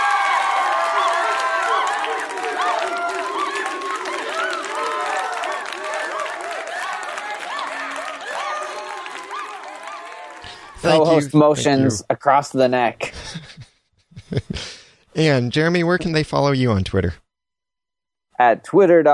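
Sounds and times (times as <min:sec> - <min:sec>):
crowd cheering sound effect: 0:00.0 - 0:12.0
laughter: 0:00.7 - 0:12.0, 0:13.0 - 0:16.5
speech: 0:10.8 - 0:13.4, 0:15.2 - 0:17.2, 0:18.4 - 0:19.1.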